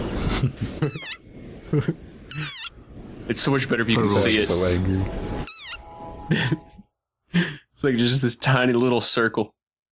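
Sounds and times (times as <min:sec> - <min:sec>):
speech: 0:00.4 - 0:02.5, 0:03.3 - 0:05.5, 0:06.3 - 0:06.7, 0:07.4 - 0:09.6
very angry frog's sonorous war cry: 0:02.3 - 0:02.7.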